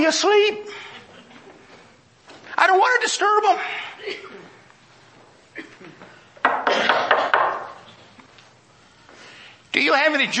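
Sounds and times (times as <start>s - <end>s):
speech: 0.0s - 0.9s, 2.6s - 4.4s, 9.8s - 10.3s
knocking on a door: 6.4s - 7.8s.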